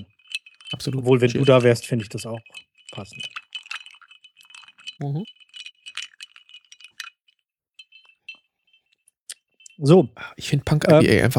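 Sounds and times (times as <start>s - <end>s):
ice cubes clinking in a glass as a cocktail is stirred: 0.0s - 8.9s
speech: 0.7s - 3.4s, 5.0s - 5.4s, 9.8s - 11.3s.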